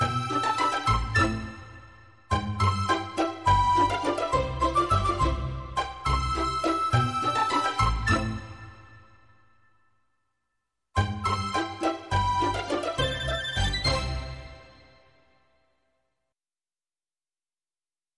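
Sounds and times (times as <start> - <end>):
waltz: 0.0 - 9.3, 11.0 - 15.3.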